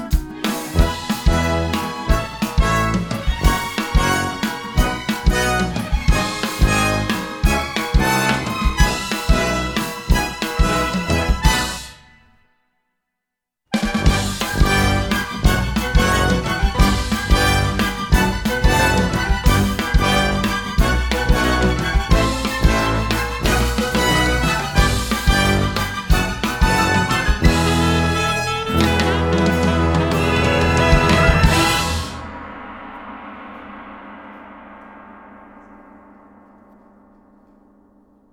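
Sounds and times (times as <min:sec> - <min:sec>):
happy orchestral pop: 0:00.4 - 0:12.0, 0:13.8 - 0:32.3.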